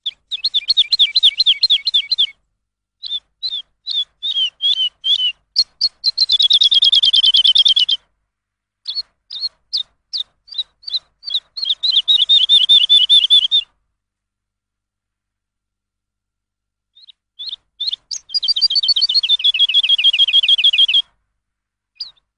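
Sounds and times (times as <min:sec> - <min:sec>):
lark song: 0:00.0 - 0:02.4, 0:03.0 - 0:08.1, 0:08.8 - 0:13.8, 0:16.9 - 0:21.2, 0:21.9 - 0:22.3.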